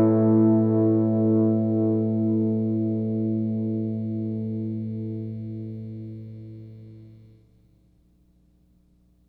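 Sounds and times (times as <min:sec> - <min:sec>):
G&L Legacy HSS guitar minor chord: 0:00.0 - 0:07.3.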